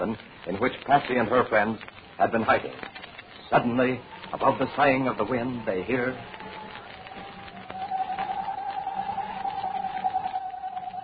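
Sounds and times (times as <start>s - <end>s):
speech: 0.0s - 6.7s
owl screech sound effect: 7.3s - 11.0s.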